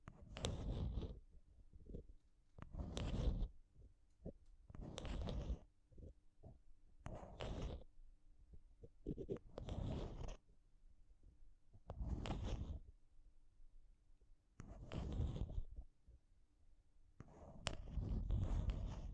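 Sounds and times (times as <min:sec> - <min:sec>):
tapping and scratching on a microphone: 0:00.0 - 0:10.5, 0:11.7 - 0:12.9, 0:14.6 - 0:15.9, 0:17.2 - 0:19.1.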